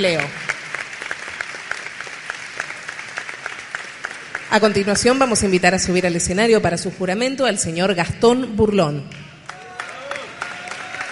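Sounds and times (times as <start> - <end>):
speech: 0.0 - 0.4, 4.5 - 9.3
audience applause: 0.0 - 5.7, 9.4 - 11.1.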